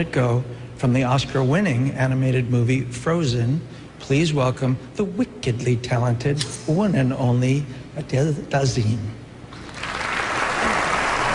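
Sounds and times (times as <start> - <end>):
speech: 0.0 - 9.2
audience clapping at the Oscars: 9.5 - 11.3.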